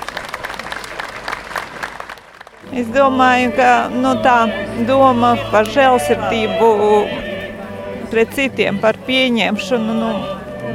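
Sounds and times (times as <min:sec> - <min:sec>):
large audience applause after a speech: 0:00.0 - 0:02.7
speech: 0:02.7 - 0:07.2, 0:08.1 - 0:10.7.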